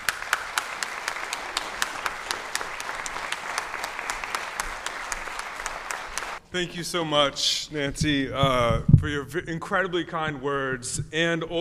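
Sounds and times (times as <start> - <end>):
event audience applause welcoming the executive director to the stage: 0.0 - 6.4
speech: 6.5 - 11.5.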